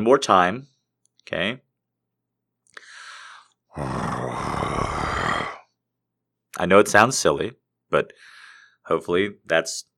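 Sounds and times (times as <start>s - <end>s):
speech: 0.0s - 1.6s, 3.8s - 4.1s, 6.6s - 8.3s, 8.9s - 9.9s
person imitating a growl: 3.7s - 5.7s.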